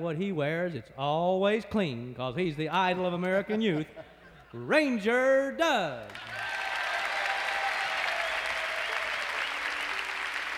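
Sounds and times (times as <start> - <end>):
speech: 0.0 - 6.4
audience applause: 6.1 - 10.5.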